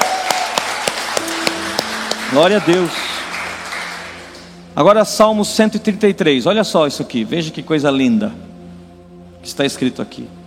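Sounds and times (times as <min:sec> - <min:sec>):
audience applauding: 0:00.0 - 0:04.6
faint sustained musical tones: 0:01.1 - 0:10.4
speech: 0:02.3 - 0:03.1, 0:04.8 - 0:08.5, 0:09.4 - 0:10.4.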